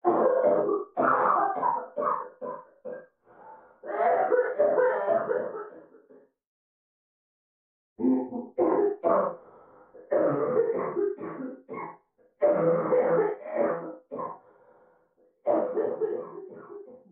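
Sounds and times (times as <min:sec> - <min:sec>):
coughing: 0:00.0 - 0:03.1, 0:03.8 - 0:06.1, 0:08.0 - 0:09.4, 0:10.0 - 0:14.4, 0:15.4 - 0:17.1.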